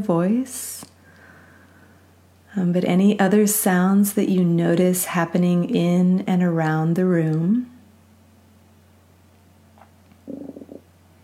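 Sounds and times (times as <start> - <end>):
speech: 0.0 - 0.9, 2.6 - 7.7
stomach growling: 10.2 - 10.9.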